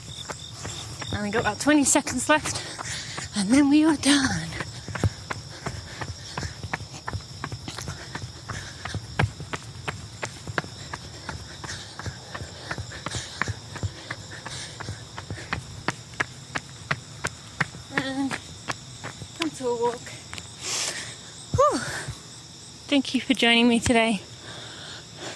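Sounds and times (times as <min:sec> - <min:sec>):
footsteps of someone jogging: 0:00.0 - 0:22.2
constant hum: 0:00.0 - 0:25.3
speech: 0:01.2 - 0:04.5, 0:23.4 - 0:24.3.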